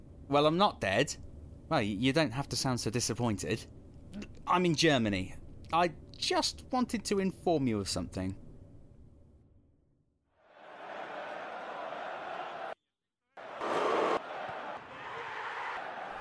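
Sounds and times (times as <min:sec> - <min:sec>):
speech: 0:00.3 - 0:08.4
simulated stadium crowd roar: 0:10.4 - 0:12.8, 0:13.4 - 0:16.1.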